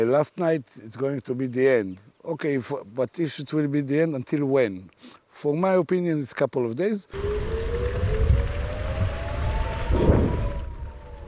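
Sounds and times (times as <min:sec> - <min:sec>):
speech: 0:00.0 - 0:07.5
air raid siren wailing: 0:07.1 - 0:11.2
low rumble: 0:07.2 - 0:11.2.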